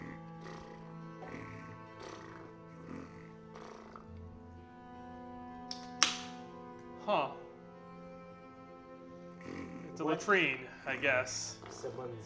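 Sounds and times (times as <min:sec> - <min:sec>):
gentle snoring: 0:00.0 - 0:04.4, 0:09.2 - 0:12.2
low musical drone: 0:00.0 - 0:12.2
speech: 0:10.0 - 0:12.2.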